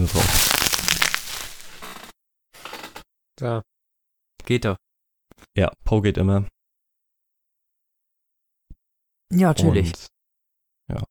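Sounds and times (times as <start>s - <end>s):
speech: 0.0s - 0.5s, 3.4s - 3.7s, 4.4s - 4.9s, 5.5s - 6.6s, 9.3s - 10.2s, 10.9s - 11.0s
bubble wrap being crushed: 0.0s - 2.1s.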